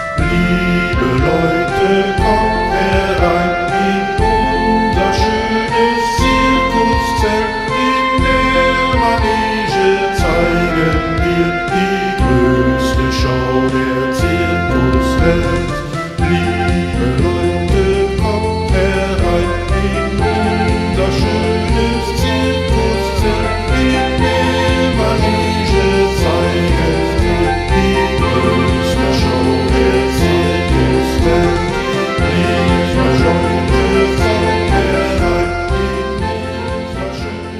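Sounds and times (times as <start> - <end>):
circus song sung as a round: 0.2 - 37.5.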